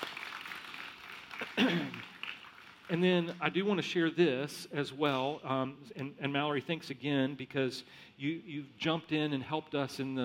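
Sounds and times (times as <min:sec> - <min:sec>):
round of applause: 0:00.0 - 0:03.0
speech: 0:02.9 - 0:10.2.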